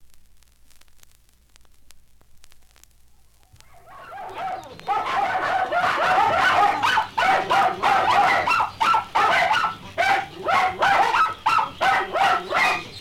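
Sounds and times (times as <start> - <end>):
dogs yelping and whining: 3.6 - 12.9.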